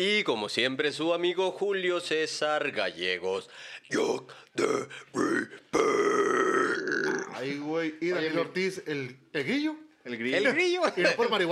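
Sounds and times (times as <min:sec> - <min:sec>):
speech: 0:00.0 - 0:11.5
guttural vocal grunt: 0:04.0 - 0:07.4.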